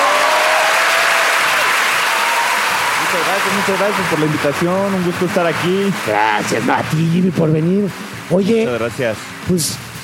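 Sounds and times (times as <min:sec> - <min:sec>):
applause: 0:00.0 - 0:05.9
speech: 0:03.4 - 0:09.9.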